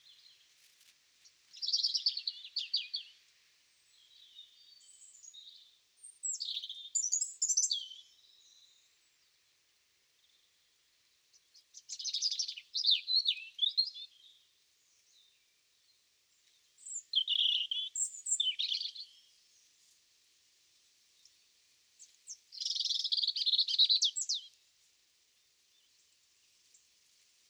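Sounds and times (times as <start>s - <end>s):
background hiss: 0.0s - 12.9s, 14.0s - 27.4s
European robin singing: 3.9s - 8.7s, 11.7s - 14.4s, 16.8s - 19.2s, 22.3s - 24.6s.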